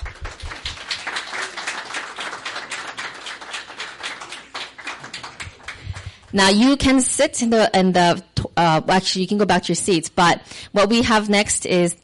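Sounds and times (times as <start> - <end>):
church audience clapping: 0.0 - 6.4
speech: 6.3 - 12.0.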